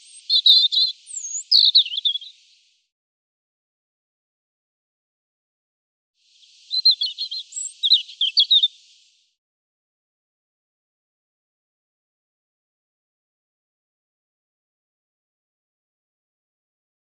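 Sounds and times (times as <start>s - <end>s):
European robin singing: 0.0s - 2.7s, 6.4s - 9.1s.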